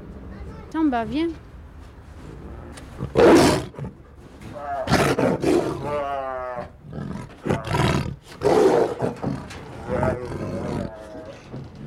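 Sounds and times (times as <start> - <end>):
speech: 0.7 - 1.5, 3.0 - 4.0
tiger roaring in its cage: 3.0 - 11.8.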